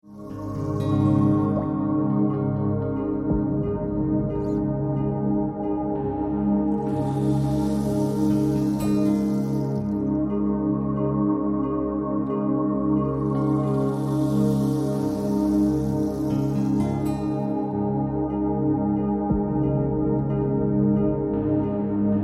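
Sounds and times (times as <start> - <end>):
relaxation music: 0.0 - 22.2.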